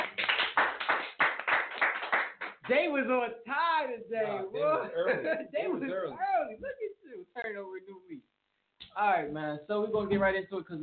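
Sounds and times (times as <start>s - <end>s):
round of applause: 0.0s - 2.9s
speech: 2.7s - 8.3s, 9.0s - 10.8s.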